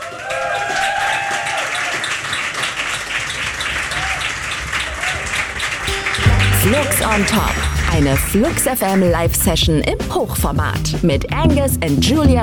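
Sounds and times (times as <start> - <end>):
applause for a live band at a radio session on a rooftop terrace: 0.0 - 9.2
faint tonal trace: 5.9 - 8.5
speech: 6.7 - 12.4.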